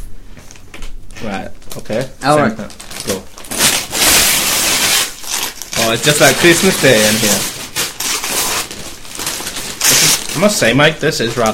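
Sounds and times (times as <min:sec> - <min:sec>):
speech: 0:01.2 - 0:03.2, 0:05.9 - 0:07.5, 0:10.4 - 0:11.5
wrapping paper being torn off a present: 0:02.6 - 0:11.5.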